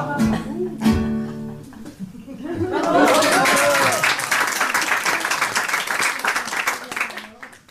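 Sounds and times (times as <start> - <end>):
laughter: 0.1 - 4.1
audience applause: 2.6 - 7.6.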